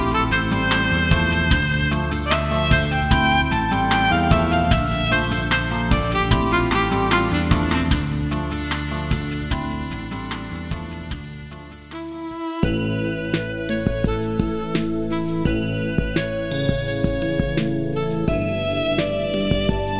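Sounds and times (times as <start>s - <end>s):
saxophone background music: 0.0s - 19.9s.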